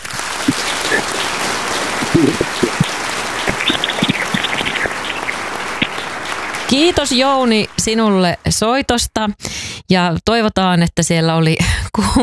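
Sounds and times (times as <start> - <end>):
applause: 0.0 - 9.1
speech: 6.8 - 12.2.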